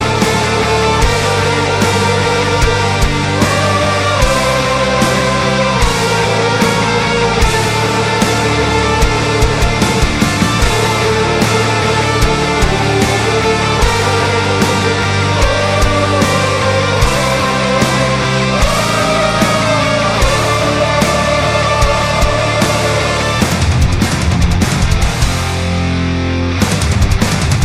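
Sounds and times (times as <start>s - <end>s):
Swedish rock ringtone: 0.0s - 27.6s.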